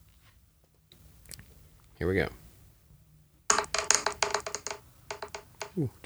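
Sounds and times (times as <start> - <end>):
speech: 2.0 - 2.4, 5.8 - 6.0
two twelve-sided dice being rolled: 3.5 - 5.8.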